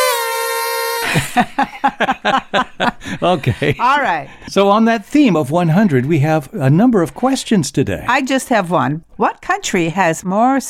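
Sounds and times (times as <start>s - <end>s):
horn toot: 0.0s - 1.4s
laughter: 0.9s - 4.0s
speech: 1.0s - 10.6s.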